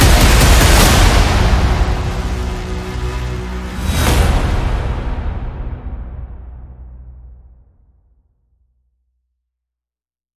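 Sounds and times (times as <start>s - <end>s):
synth music without lead synths: 0.0s - 7.4s.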